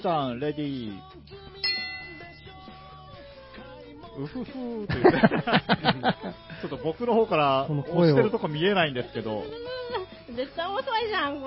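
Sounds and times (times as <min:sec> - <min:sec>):
speech: 0:00.0 - 0:01.6, 0:04.2 - 0:11.4
gong struck to start a game round: 0:01.6 - 0:02.6
laughter: 0:04.2 - 0:06.8.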